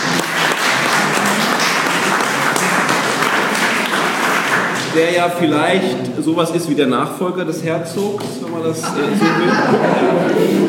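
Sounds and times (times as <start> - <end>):
audience applause: 0.0 - 5.4
speech: 5.0 - 10.6
laughter: 8.8 - 10.6.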